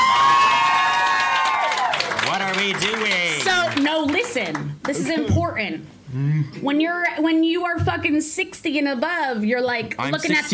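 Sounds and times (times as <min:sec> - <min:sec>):
comedy club audience cheering and whooping: 0:00.0 - 0:02.6
comedy club audience clapping: 0:00.0 - 0:05.3
speech: 0:02.8 - 0:03.2, 0:04.4 - 0:10.5.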